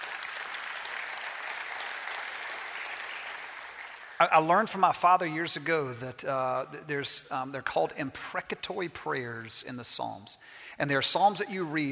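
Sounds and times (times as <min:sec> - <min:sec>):
audience clapping: 0:00.0 - 0:04.8
speech: 0:04.2 - 0:11.9.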